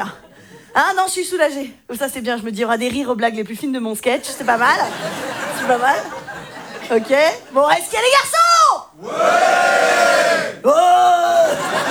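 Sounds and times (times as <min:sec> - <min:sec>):
speech: 0:00.0 - 0:00.2, 0:00.8 - 0:06.2, 0:06.9 - 0:08.4, 0:09.0 - 0:10.0
laughter: 0:04.2 - 0:08.0, 0:09.0 - 0:11.8
audience of men bellowing: 0:09.0 - 0:11.8.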